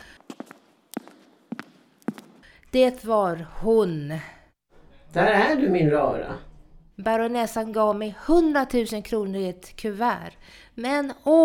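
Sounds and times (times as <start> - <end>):
footsteps on a staircase: 0.0 - 2.5
speech: 2.7 - 4.4, 5.2 - 11.4.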